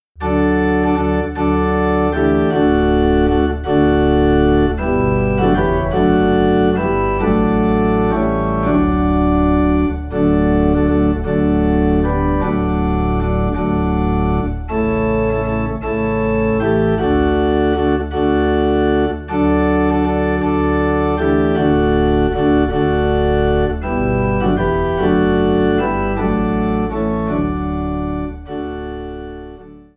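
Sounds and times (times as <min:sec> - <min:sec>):
low organ note in D: 0:00.2 - 0:29.9.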